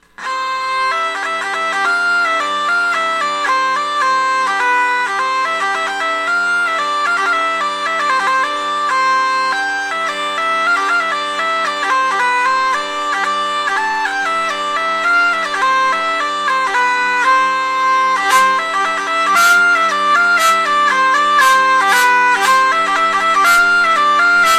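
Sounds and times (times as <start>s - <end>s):
hurdy-gurdy with natural buzzing bridge playing a mazurka: 0.0s - 24.5s.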